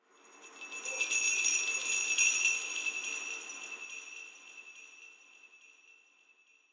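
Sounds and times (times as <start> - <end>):
Christmas song: 0.2 - 5.1.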